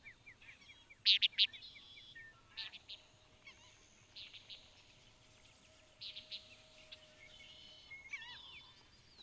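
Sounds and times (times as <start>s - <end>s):
Antillean Nighthawk calling: 0.5s - 9.2s.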